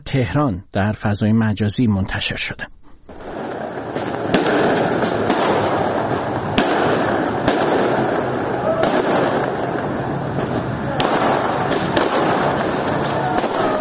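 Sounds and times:
speech: 0.0 - 2.8
fireworks exploding in a city: 2.8 - 13.7.

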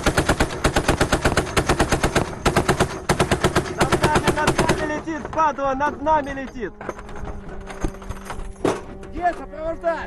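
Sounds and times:
automatic anti-aircraft fire at night: 0.0 - 5.3
speech: 5.4 - 7.0, 9.2 - 10.0.

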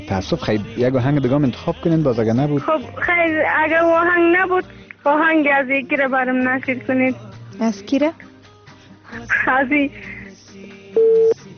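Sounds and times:
speech: 0.1 - 8.3, 9.2 - 10.2
busy signal tone of a disconnected phone call: 11.0 - 11.4
warbling phone line noise: 11.0 - 11.4.

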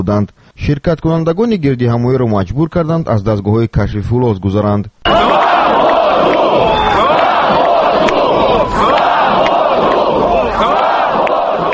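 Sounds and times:
speech: 0.0 - 5.4
protest crowd chanting freedom slogans: 5.1 - 11.7.

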